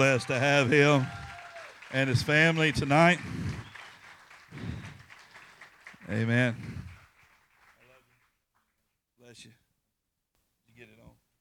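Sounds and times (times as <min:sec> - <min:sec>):
speech: 0:00.0 - 0:01.2, 0:01.9 - 0:03.5, 0:06.1 - 0:06.8, 0:09.3 - 0:09.6
audience applause: 0:00.0 - 0:08.4.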